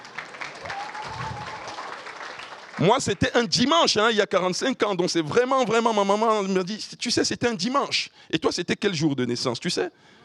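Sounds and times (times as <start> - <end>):
audience clapping for a birthday: 0.0 - 3.8
speech: 2.8 - 10.2.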